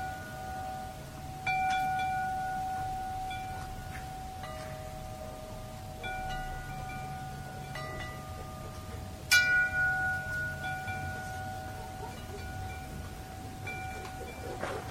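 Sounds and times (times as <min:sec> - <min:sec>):
metal chime ringing: 0:00.0 - 0:14.6.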